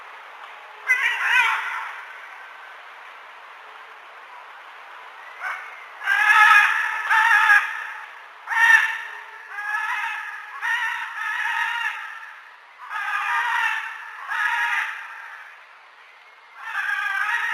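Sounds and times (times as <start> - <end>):
military macaws squawking and screeching in chorus: 0.9 - 2.1, 5.4 - 15.4, 16.6 - 17.5.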